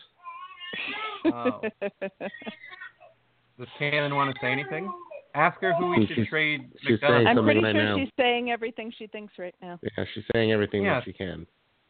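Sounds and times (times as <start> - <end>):
baby crying: 0.0 - 1.4, 2.2 - 6.2
laughter: 0.8 - 2.7, 5.7 - 8.1
speech: 1.2 - 2.7, 3.6 - 11.6.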